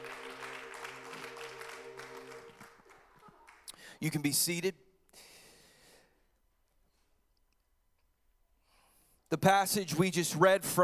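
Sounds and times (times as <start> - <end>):
audience clapping hands: 0.0 - 4.3
speech: 4.0 - 4.8, 9.4 - 10.8.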